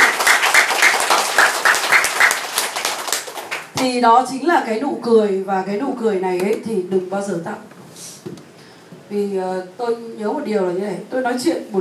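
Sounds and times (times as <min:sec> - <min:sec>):
crowd applauding: 0:00.0 - 0:03.8
speech: 0:03.8 - 0:07.8, 0:09.1 - 0:11.8.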